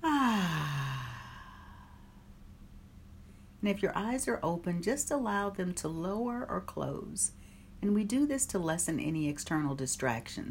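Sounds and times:
voiced sighing exhale during a guided breathing exercise: 0.0 - 2.3
speech: 3.6 - 10.5.

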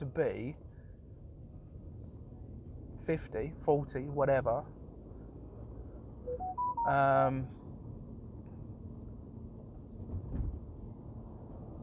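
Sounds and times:
speech: 0.0 - 0.7, 3.1 - 4.8, 6.3 - 7.6
phone beeps climbing in pitch: 6.3 - 7.0.

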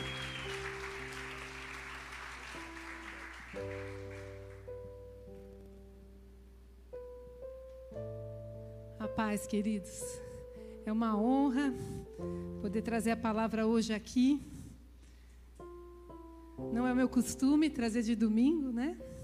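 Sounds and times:
audience applauding: 0.0 - 4.8
soft organ-like sustained keyboard chords: 0.0 - 14.8, 15.5 - 19.2
speech: 3.6 - 3.9, 9.2 - 10.2, 10.9 - 14.5, 16.8 - 19.1.

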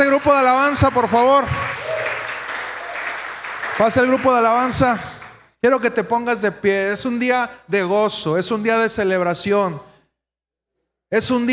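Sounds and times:
audience applause: 0.0 - 5.4
speech: 0.1 - 1.8, 3.8 - 9.9, 11.1 - 11.5.

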